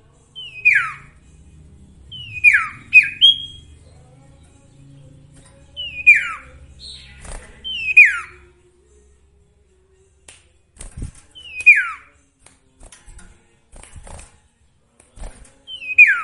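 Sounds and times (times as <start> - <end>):
sooty-headed bulbul song: 0.0 - 12.8, 15.2 - 16.2.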